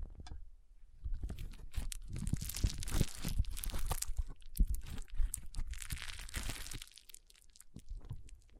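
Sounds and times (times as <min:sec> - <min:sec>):
foam squeezed and rubbed for a brain massage: 0:01.2 - 0:07.2.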